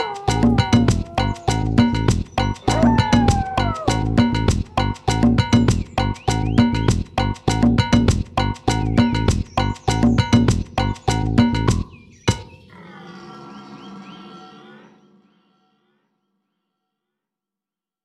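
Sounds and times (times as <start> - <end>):
instrumental chanson: 0.0 - 12.4.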